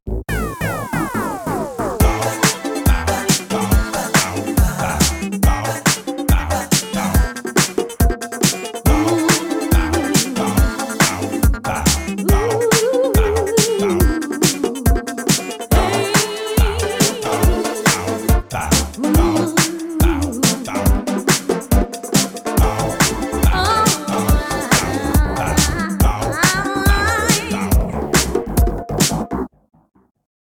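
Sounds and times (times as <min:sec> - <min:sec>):
disco music: 0:00.3 - 0:29.5.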